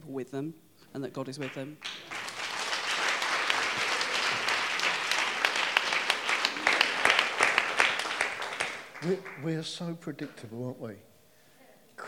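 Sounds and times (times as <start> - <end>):
speech: 0.1 - 2.2, 9.0 - 11.1
clapping: 1.4 - 9.5.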